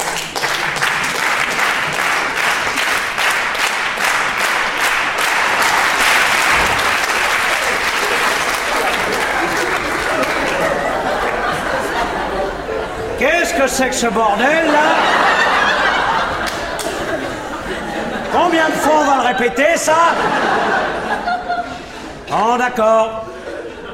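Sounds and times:
audience applause: 0.0s - 12.7s, 14.5s - 19.1s
laughter: 5.2s - 22.3s, 23.1s - 23.9s
speech: 13.7s - 15.3s, 18.3s - 21.0s, 22.3s - 23.2s.

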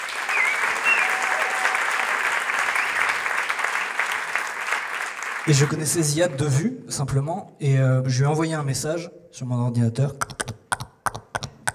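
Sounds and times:
audience applause: 0.0s - 6.0s
faint whistles: 0.2s - 1.6s, 2.7s - 3.2s
speech: 5.5s - 10.3s.

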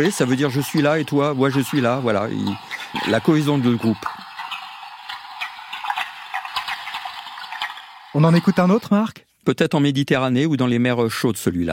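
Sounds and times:
speech: 0.0s - 4.2s, 8.2s - 11.7s
herring releasing gas bubbles underwater: 0.0s - 8.8s.

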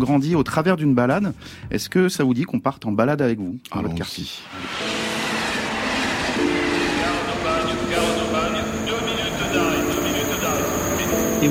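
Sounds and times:
speech: 0.0s - 4.9s
train hums and squeals: 4.4s - 11.4s
train wheels rumbling arriving at Aubagne station: 4.6s - 11.4s.

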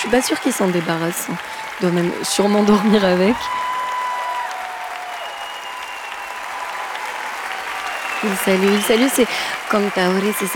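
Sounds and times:
speech: 0.0s - 3.7s, 8.2s - 10.5s
standing ovation in the auditorium of Radio France: 0.0s - 10.5s.

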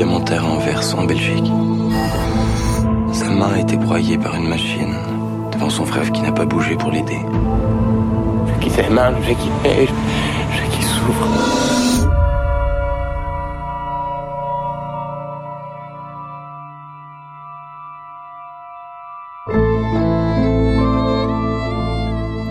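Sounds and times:
film theme music: 0.0s - 22.4s
speech: 0.3s - 7.8s, 8.6s - 10.3s, 11.0s - 11.8s.

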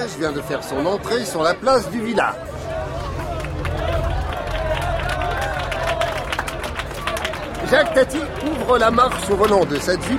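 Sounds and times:
speech: 0.0s - 2.6s, 7.7s - 10.1s
jubilant village crowd cheering and applauding: 2.4s - 10.1s.

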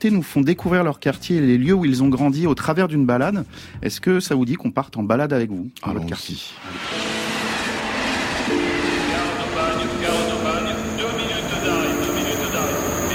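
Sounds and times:
speech: 0.0s - 7.0s
train arriving at Aubagne station rumbling on rails: 6.6s - 13.1s
sustained humming tones of train: 6.8s - 13.1s.

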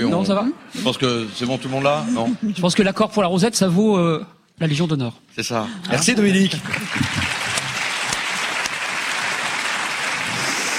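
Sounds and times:
speech: 0.0s - 7.3s
enthusiastic applause from a crowd: 6.0s - 10.7s.

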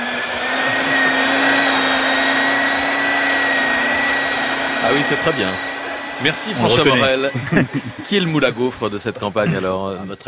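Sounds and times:
Calor Spicy Candy hair straightening dryer blowing: 0.0s - 10.2s
laughter: 0.4s - 2.0s, 5.9s - 10.2s
speech: 4.9s - 10.2s.

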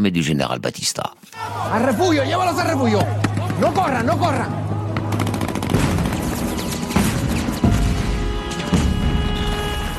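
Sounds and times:
speech: 0.0s - 4.6s
rapid gunfire from Batista's army attacking Cuban revolutionaries: 5.0s - 9.7s
heavy blasts from an air attack: 5.0s - 9.9s.

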